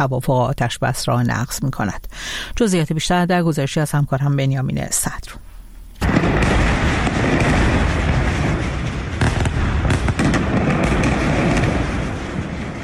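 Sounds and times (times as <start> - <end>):
speech: 0.0 - 5.4
airstrike explosions with continuous rumbling roar: 6.0 - 12.8
sharp blasts and cracks from an airstrike: 6.0 - 12.8.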